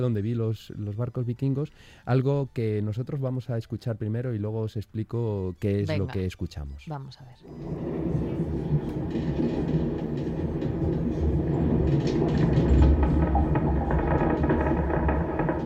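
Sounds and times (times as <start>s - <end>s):
speech: 0.0s - 8.6s
creaking: 7.4s - 15.6s.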